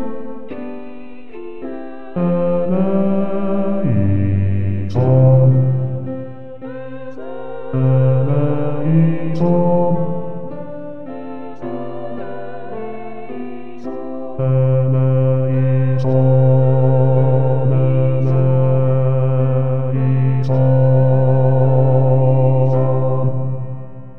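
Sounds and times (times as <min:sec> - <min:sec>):
bass voice singing a kyrie: 0:02.1 - 0:06.2, 0:07.8 - 0:10.2, 0:14.4 - 0:23.5.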